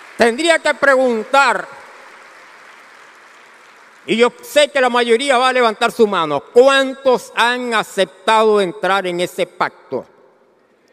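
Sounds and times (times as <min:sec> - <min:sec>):
audience applause: 0:00.0 - 0:04.4
speech: 0:00.2 - 0:01.8, 0:04.0 - 0:10.1.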